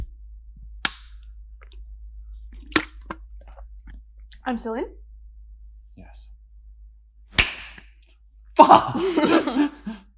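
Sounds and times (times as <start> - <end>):
low steady hum: 0.0 - 10.1
hand slaps in slaps game: 0.8 - 1.2, 7.3 - 8.0
speech: 4.4 - 5.0, 6.1 - 6.3, 8.6 - 10.0
laughter: 8.6 - 10.1.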